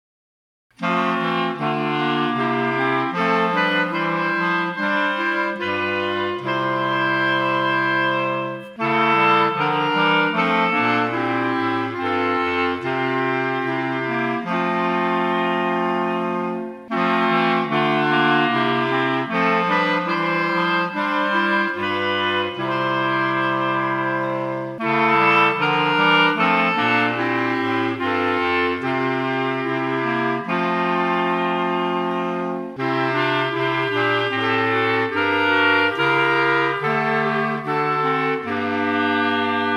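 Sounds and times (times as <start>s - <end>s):
clarinet: 0.7s - 39.7s.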